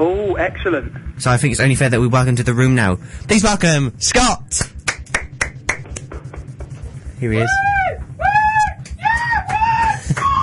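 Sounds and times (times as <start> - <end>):
speech: 0.0 - 4.8, 7.2 - 7.8
fans cheering and screaming: 7.4 - 10.4.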